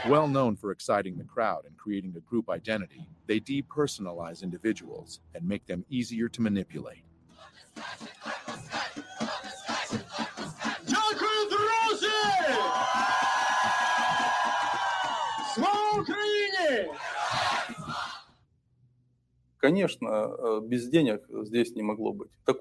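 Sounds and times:
large crowd chanting and shouting in unison: 0.0s - 0.3s, 7.4s - 18.3s
speech: 0.0s - 7.1s, 19.6s - 22.5s.

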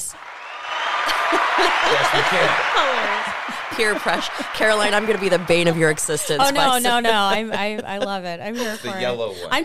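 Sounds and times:
applause sound effect from soundboard: 0.0s - 7.3s
laughter: 1.1s - 9.6s
speech: 1.6s - 9.6s.

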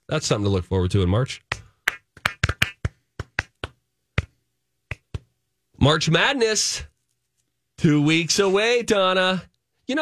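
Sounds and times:
speech: 0.1s - 1.5s, 5.8s - 6.9s, 7.8s - 9.9s
hands clapping: 1.9s - 2.8s.

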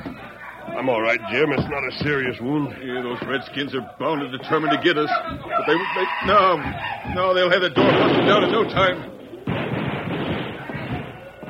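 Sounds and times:
speech: 0.8s - 9.1s
rifle fire: 9.4s - 11.2s.

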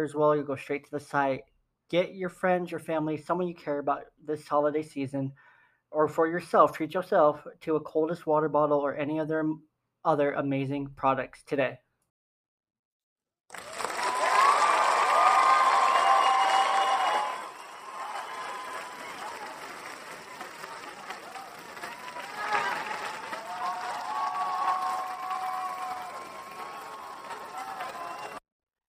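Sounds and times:
speech: 0.0s - 11.8s
studio audience applause and cheering: 13.5s - 28.4s
studio audience whoops and voices: 13.6s - 28.4s.

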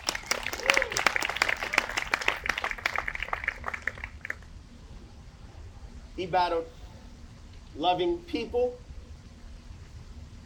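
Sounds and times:
audience applause: 0.0s - 4.4s
speech: 6.2s - 6.8s, 7.7s - 8.8s.

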